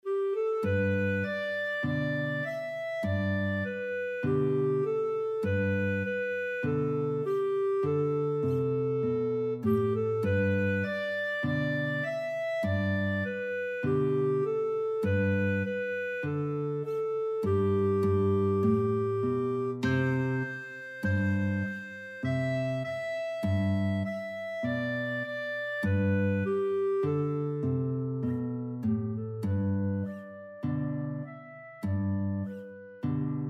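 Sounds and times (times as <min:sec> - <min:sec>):
guitar and clarinet duet: 0:00.0 - 0:33.4.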